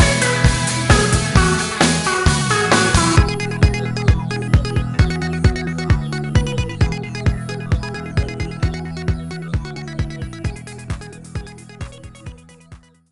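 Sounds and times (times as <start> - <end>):
band playing instrumental: 0.0 - 8.9.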